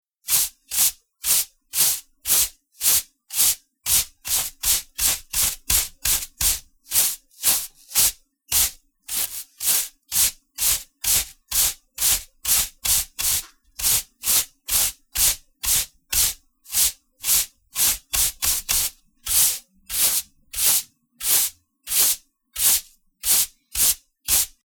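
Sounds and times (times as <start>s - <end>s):
coarse hair brush sweeping tiled floor: 0.2s - 24.6s.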